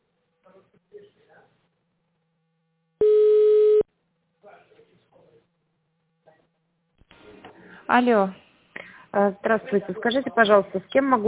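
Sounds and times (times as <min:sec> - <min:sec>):
telephone line tone while a call is being transferred: 0:03.0 - 0:03.8
speech: 0:07.9 - 0:08.4, 0:09.1 - 0:11.2.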